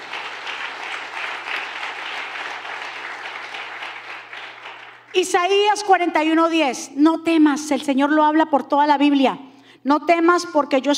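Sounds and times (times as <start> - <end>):
crowd applauding: 0.0 - 5.2
speech: 5.2 - 10.9.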